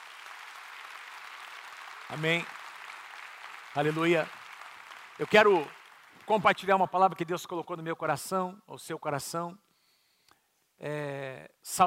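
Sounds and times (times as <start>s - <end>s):
audience applause: 0.0s - 7.5s
speech: 2.1s - 2.6s, 3.7s - 4.4s, 5.2s - 9.6s, 10.8s - 11.8s.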